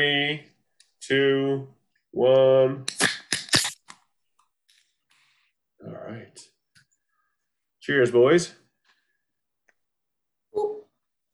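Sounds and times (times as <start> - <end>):
speech: 0.0 - 3.0, 7.9 - 8.6
beer cans being opened: 2.9 - 4.0.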